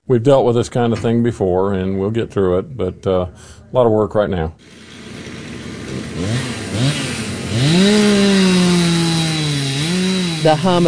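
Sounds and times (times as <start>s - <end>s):
speech: 0.1s - 4.8s, 10.4s - 10.8s
chainsaw cutting fallen trees: 4.6s - 10.8s.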